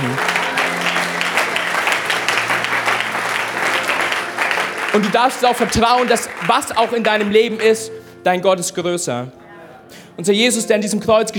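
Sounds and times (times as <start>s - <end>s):
crowd applause and cheering: 0.0s - 8.0s
speech: 5.0s - 11.3s.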